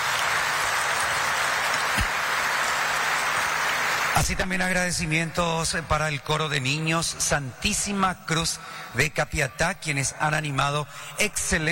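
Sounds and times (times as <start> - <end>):
crowd applause: 0.0 - 4.7
speech: 4.2 - 11.7.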